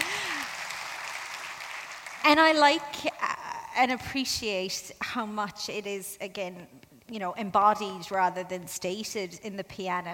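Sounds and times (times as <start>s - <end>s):
clapping: 0.0s - 2.2s
speech: 2.2s - 10.1s.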